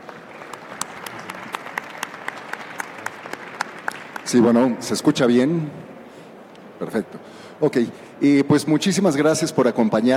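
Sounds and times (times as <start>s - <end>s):
audience applause: 0.0s - 4.6s
speech: 4.3s - 5.8s, 6.8s - 10.1s.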